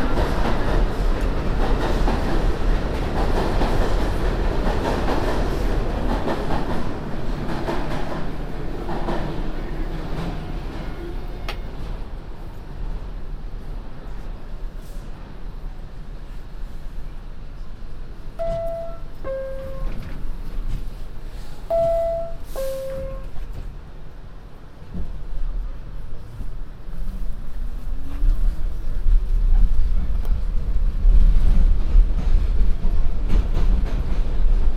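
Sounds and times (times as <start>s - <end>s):
MTA subway train carriage rumble and rattle: 0.0s - 34.7s
MTA subway two-note chime: 18.4s - 20.0s, 21.7s - 23.4s.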